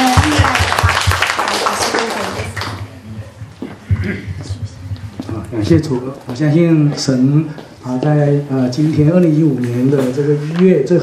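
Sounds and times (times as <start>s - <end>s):
church congregation clapping: 0.0s - 2.8s
speech: 5.6s - 11.0s.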